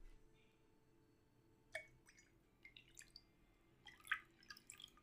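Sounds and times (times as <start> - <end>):
water poured into an empty glass: 1.8 - 5.0.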